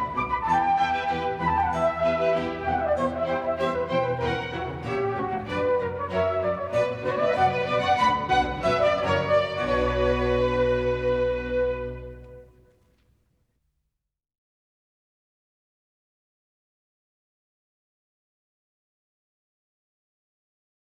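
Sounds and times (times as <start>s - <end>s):
baroque orchestral suite: 0.0s - 12.6s.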